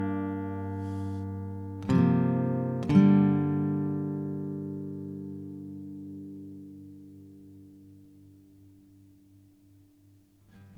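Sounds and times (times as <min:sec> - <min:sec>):
guitar improvisation in G minor at 120 BPM: 0:00.0 - 0:08.0.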